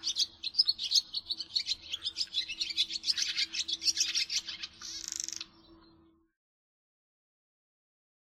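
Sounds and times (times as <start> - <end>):
swallows twittering: 0.0 - 6.3.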